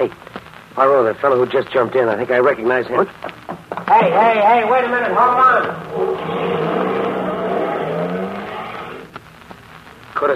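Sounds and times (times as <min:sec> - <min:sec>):
speech: 0:00.0 - 0:06.6
truck engine revving and driving away: 0:05.8 - 0:09.1.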